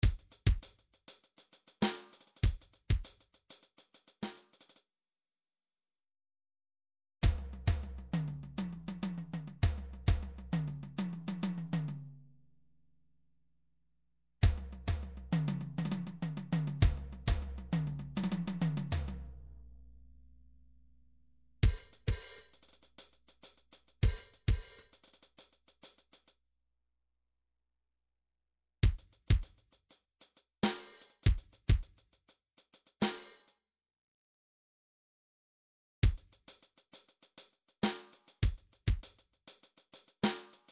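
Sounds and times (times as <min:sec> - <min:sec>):
midi drums: 0:00.0 - 0:04.8, 0:07.2 - 0:12.1, 0:14.4 - 0:19.4, 0:21.6 - 0:26.2, 0:28.8 - 0:29.7, 0:30.3 - 0:33.5, 0:36.0 - 0:40.7.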